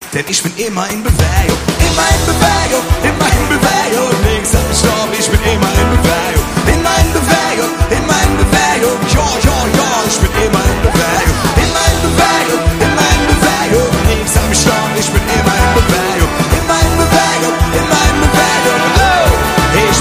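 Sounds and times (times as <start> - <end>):
orchestra playing live: 1.1 - 19.9.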